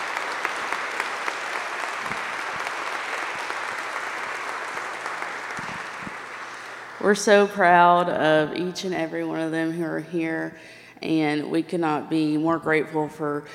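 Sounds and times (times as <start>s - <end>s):
audience applause: 0.0s - 7.2s
speech: 7.1s - 13.5s.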